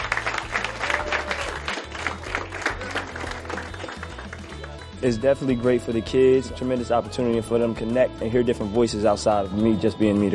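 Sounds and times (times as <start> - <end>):
group applauding welcoming a speaker: 0.0 - 4.9
speech: 5.0 - 10.3.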